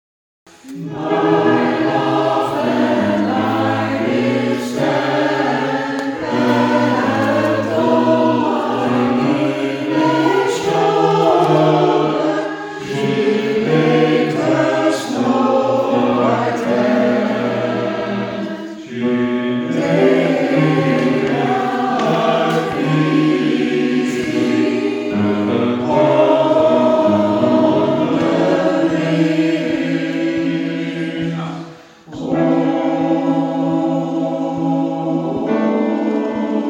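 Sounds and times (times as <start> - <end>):
soprano alto and bass voices singing: 0.6 - 36.6.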